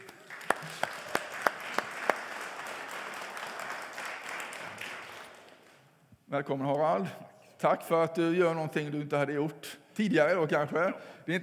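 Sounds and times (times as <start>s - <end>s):
audience applause: 0.0s - 5.8s
speech: 6.3s - 11.4s.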